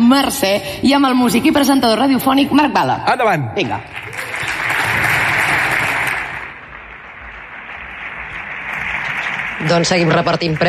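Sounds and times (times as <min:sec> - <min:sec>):
speech: 0:00.1 - 0:04.0, 0:09.6 - 0:10.6
audience applause: 0:03.9 - 0:10.6.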